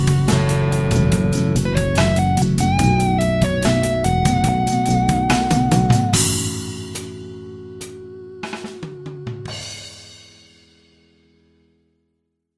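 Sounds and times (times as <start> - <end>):
melody: 0.0 - 9.7.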